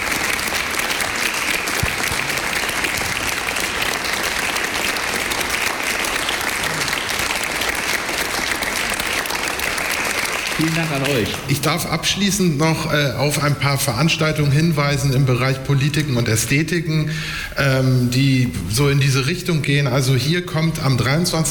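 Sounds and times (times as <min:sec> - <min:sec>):
large audience applause: 0:00.0 - 0:12.2
speech: 0:10.6 - 0:21.4.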